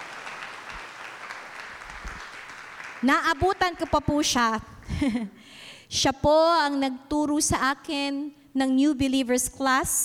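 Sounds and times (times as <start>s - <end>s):
audience clapping: 0.0s - 4.2s
speech: 3.0s - 10.0s.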